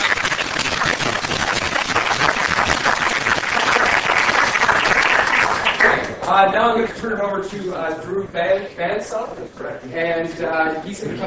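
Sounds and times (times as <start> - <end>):
audience applause: 0.0 - 6.1
speech: 6.4 - 11.2.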